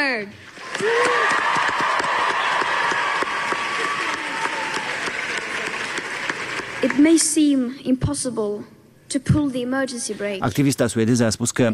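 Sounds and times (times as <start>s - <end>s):
speech: 0.0s - 1.9s, 6.8s - 11.7s
students applauding and cheering: 0.5s - 7.3s.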